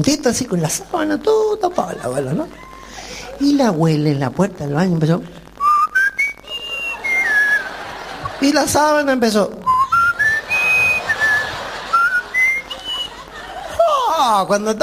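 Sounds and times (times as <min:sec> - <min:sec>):
speech: 0:00.0 - 0:02.7, 0:03.4 - 0:05.4, 0:08.4 - 0:09.7, 0:14.4 - 0:14.8
laughter: 0:01.6 - 0:03.6, 0:06.4 - 0:14.3
flute-like whistling: 0:05.6 - 0:07.9, 0:09.6 - 0:13.2.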